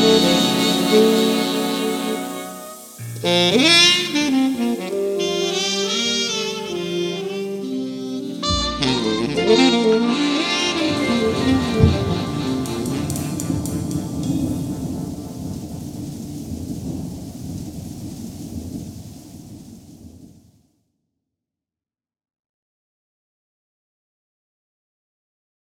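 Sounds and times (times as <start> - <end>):
big band: 0.0 - 16.4.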